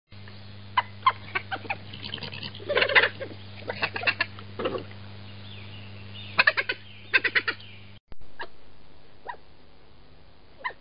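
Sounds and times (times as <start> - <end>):
badger chittering: 0.8 - 4.8, 6.2 - 7.6.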